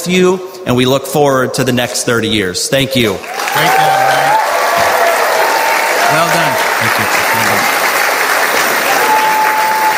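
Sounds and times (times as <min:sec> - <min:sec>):
speech: 0:00.0 - 0:04.9, 0:06.1 - 0:07.8
warm audience applause after a speech at a banquet: 0:03.2 - 0:09.9.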